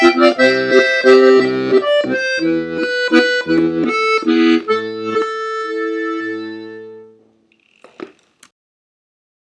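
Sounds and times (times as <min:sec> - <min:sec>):
accordion: 0:00.0 - 0:07.2.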